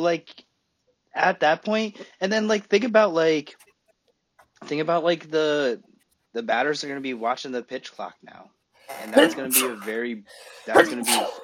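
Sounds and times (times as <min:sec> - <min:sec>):
speech: 0:00.0 - 0:00.4, 0:01.2 - 0:03.6, 0:04.6 - 0:11.4
loud breathy sneeze: 0:08.9 - 0:11.4.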